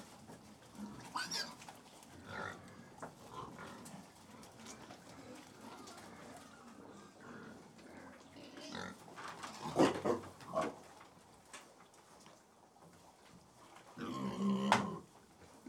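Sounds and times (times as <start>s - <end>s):
about 100 pigs squealing and grunting while feeding: 0.8s - 1.6s, 2.2s - 3.8s, 6.0s - 10.8s, 14.0s - 15.1s.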